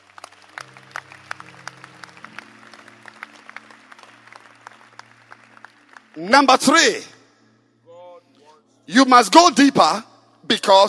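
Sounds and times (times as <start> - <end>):
crowd clapping: 0.0 - 7.2
speech: 6.2 - 7.1, 9.0 - 10.8.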